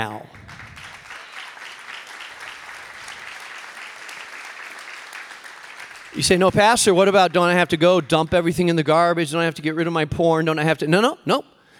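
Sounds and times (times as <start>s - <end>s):
speech: 0.0s - 0.6s, 6.2s - 11.5s
audience applause: 0.3s - 8.6s.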